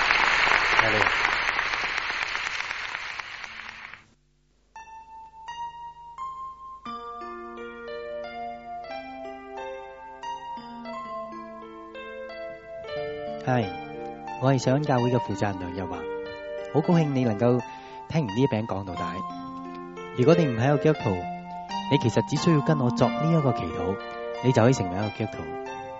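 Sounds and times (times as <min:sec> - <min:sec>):
audience applause: 0:00.0 - 0:04.0
speech: 0:00.8 - 0:01.3, 0:14.4 - 0:19.4, 0:20.2 - 0:21.3, 0:21.9 - 0:25.8.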